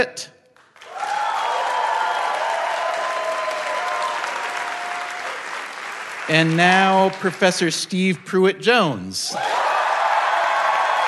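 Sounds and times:
speech: 0:00.0 - 0:00.4, 0:06.3 - 0:09.6
audience applause at a live show: 0:00.6 - 0:07.7, 0:09.4 - 0:11.0.

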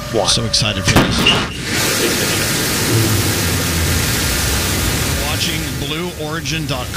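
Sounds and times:
speech: 0:00.1 - 0:03.3, 0:05.4 - 0:06.9
rocket launch roar: 0:01.0 - 0:06.2.

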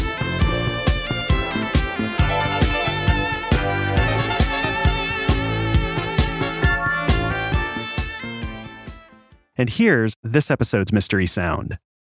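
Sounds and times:
1979 electronic synth-pop track by a Japanese electronic band: 0:00.0 - 0:09.2
speech: 0:09.6 - 0:11.9.

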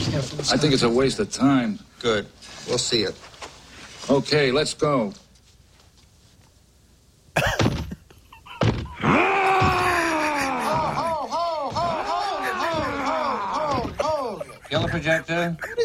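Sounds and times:
speech: 0:00.1 - 0:03.3, 0:04.0 - 0:05.2, 0:14.9 - 0:15.8
laughter: 0:07.4 - 0:15.8
man screaming sound effect: 0:09.0 - 0:14.6.

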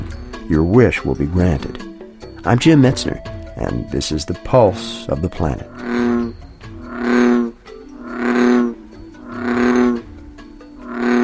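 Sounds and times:
speech: 0:00.5 - 0:05.8
male bullfrog bellowing: 0:04.8 - 0:11.2.

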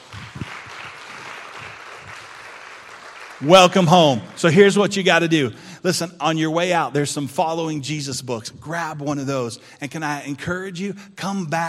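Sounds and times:
audience applause: 0:00.0 - 0:04.7
speech: 0:03.4 - 0:11.6.

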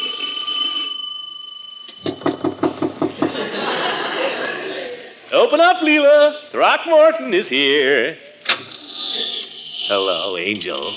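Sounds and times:
doorbell ringing: 0:00.0 - 0:03.4
knocking on door: 0:02.0 - 0:03.4
laughter: 0:03.1 - 0:05.3, 0:08.7 - 0:10.9
speech: 0:05.5 - 0:08.2, 0:09.9 - 0:10.9.

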